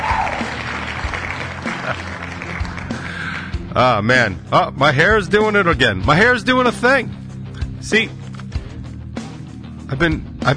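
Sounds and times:
crowd applause: 0.0s - 3.5s
speech: 3.8s - 7.2s, 7.8s - 8.2s, 9.9s - 10.5s.

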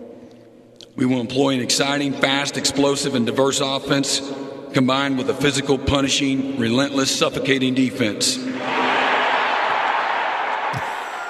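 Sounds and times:
speech: 1.0s - 8.8s
large crowd roaring and cheering: 8.5s - 11.2s.

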